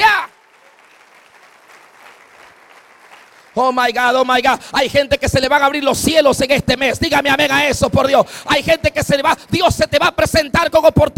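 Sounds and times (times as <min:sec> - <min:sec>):
audience applause: 0:00.0 - 0:03.8
speech: 0:03.6 - 0:11.1.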